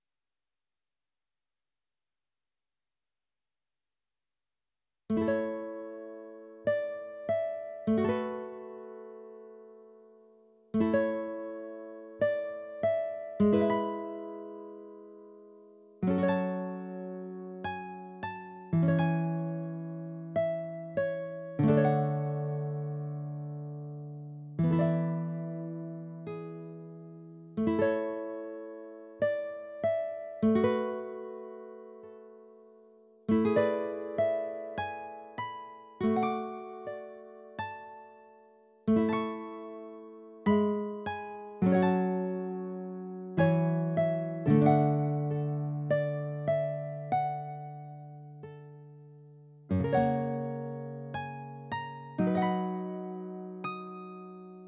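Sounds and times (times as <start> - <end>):
guitar: 5.2 - 54.6.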